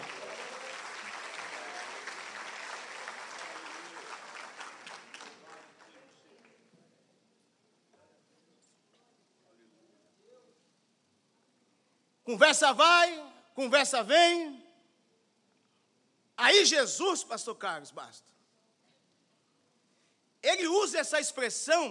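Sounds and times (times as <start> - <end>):
audience applauding: 0.0 - 6.6
speech: 12.3 - 14.6, 16.4 - 18.4, 20.4 - 21.8.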